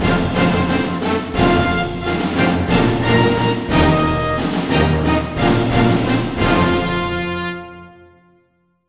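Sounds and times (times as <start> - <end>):
victory jingle: 0.0 - 7.9.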